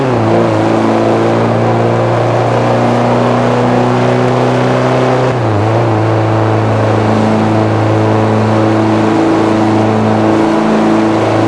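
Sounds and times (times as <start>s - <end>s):
vehicles cruising: 0.0s - 11.4s.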